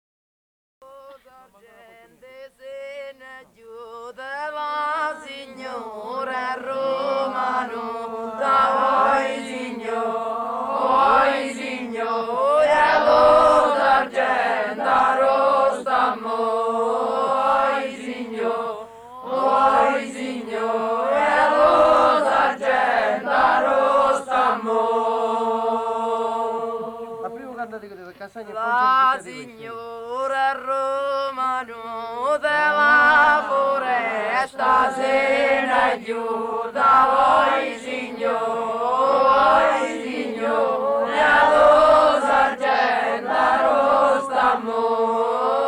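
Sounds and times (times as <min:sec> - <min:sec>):
village chorus singing: 0:00.8 - 0:27.8, 0:28.5 - 0:45.6.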